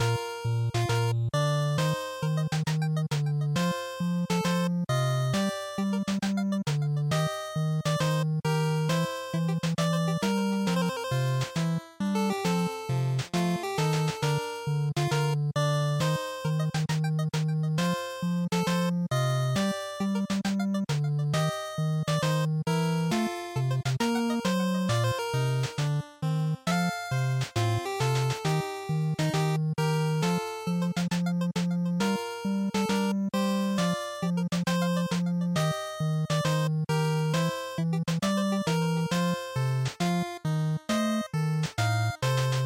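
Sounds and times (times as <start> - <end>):
RPG title background music loop: 0.0 - 42.6.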